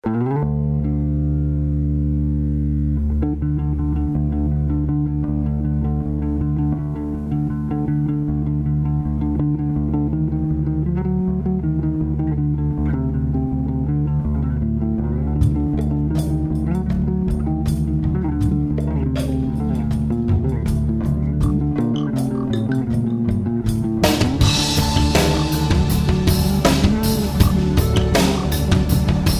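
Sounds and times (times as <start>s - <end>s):
guitars: 0.0s - 29.3s.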